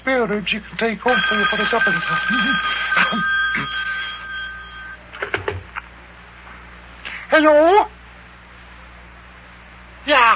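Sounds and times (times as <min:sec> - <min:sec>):
speech: 0:00.0 - 0:03.8, 0:07.4 - 0:08.0, 0:10.1 - 0:10.3
telephone bell ringing: 0:01.1 - 0:05.0.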